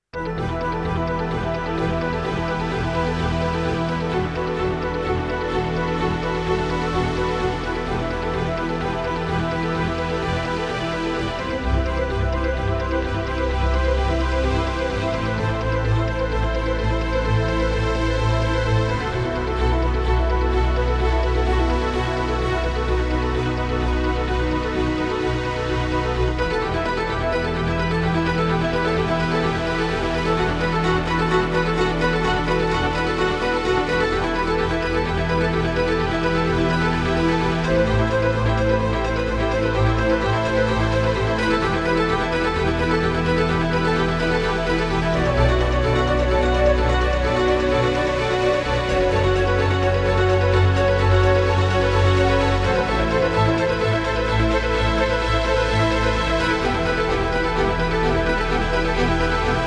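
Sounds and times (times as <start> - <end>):
strings melody: 0.0 - 59.6.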